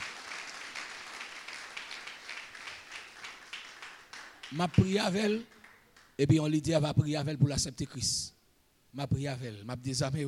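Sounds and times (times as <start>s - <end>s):
church audience applauding: 0.0s - 6.2s
speech: 4.5s - 5.6s, 6.2s - 10.2s.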